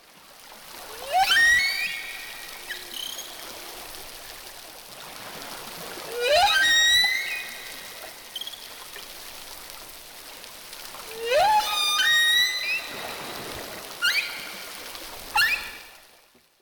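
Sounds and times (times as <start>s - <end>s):
watery hiss: 0.4s - 16.0s
whale song whistles: 0.9s - 4.1s, 6.1s - 9.1s, 10.9s - 16.1s.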